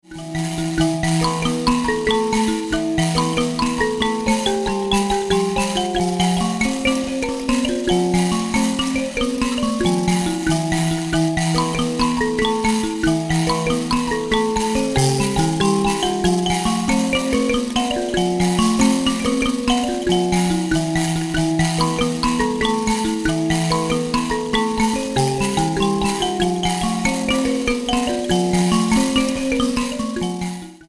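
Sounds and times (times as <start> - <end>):
mbira: 0.0 - 30.8.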